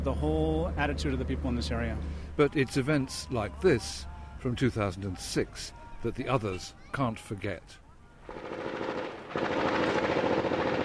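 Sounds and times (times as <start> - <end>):
speech: 0.1 - 8.5
gunfire: 8.3 - 10.8.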